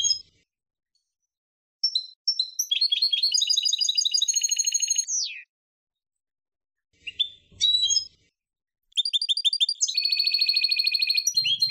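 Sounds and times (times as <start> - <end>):
finch singing: 1.8 - 5.5, 7.0 - 8.1, 8.9 - 11.6.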